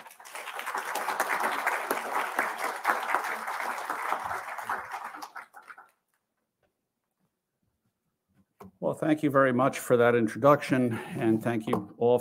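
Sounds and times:
audience applause welcoming a lecturer: 0.0 - 6.0
speech: 8.9 - 12.1.

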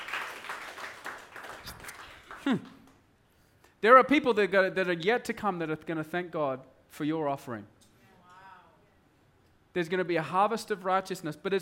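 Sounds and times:
audience clapping: 0.0 - 3.1
speech: 2.4 - 2.8, 3.8 - 7.8, 9.8 - 11.6.

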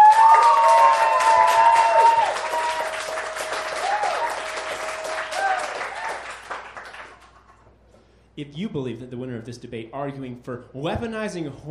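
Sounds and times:
audience applause: 0.0 - 7.7
speech: 8.4 - 11.7.

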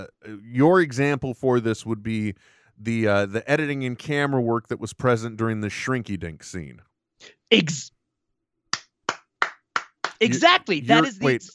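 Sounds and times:
speech: 0.0 - 8.0, 10.2 - 11.5
laughter: 0.2 - 2.3, 2.9 - 6.3, 10.2 - 11.5
single pair of hands clapping: 8.8 - 11.5.

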